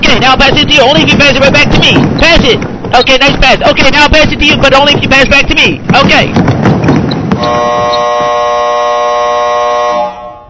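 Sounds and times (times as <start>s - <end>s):
speech: 0.2s - 6.5s, 7.4s - 8.1s
clothes dryer end-of-cycle buzzer: 7.4s - 10.4s.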